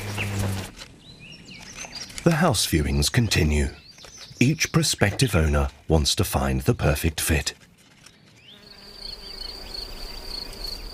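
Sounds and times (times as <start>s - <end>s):
bees buzzing: 0.0s - 0.7s, 8.4s - 10.9s
speech: 2.2s - 3.8s, 4.4s - 7.6s.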